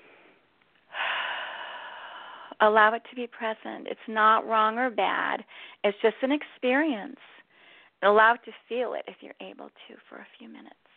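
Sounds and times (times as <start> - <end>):
deep inhale during a guided meditation: 0.0 - 2.6
speech: 2.6 - 7.4, 8.0 - 10.8.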